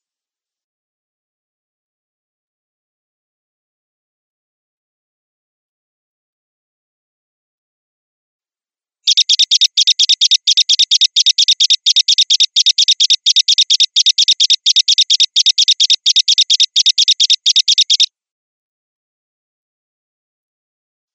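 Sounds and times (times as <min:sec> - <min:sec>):
grasshopper chirping: 0:09.1 - 0:18.1.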